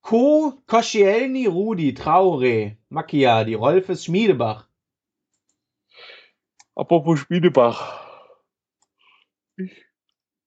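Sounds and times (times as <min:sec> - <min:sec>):
speech: 0:00.1 - 0:04.7, 0:06.8 - 0:08.0, 0:09.6 - 0:09.8
computer mouse clicking: 0:05.2 - 0:05.7.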